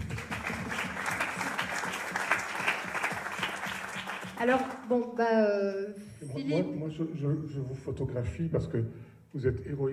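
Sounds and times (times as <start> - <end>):
audience applause: 0.0 - 4.8
speech: 4.4 - 9.9.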